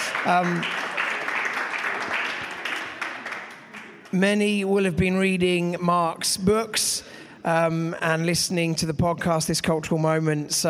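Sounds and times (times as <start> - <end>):
audience applause: 0.0 - 4.1
speech: 0.2 - 0.8, 4.1 - 10.6.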